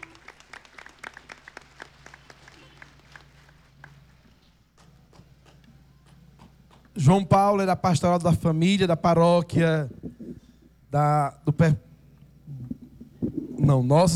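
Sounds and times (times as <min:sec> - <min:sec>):
audience applause: 0:00.0 - 0:04.4
low steady hum: 0:00.0 - 0:14.1
speech: 0:07.0 - 0:10.0, 0:10.9 - 0:11.8, 0:13.7 - 0:14.1.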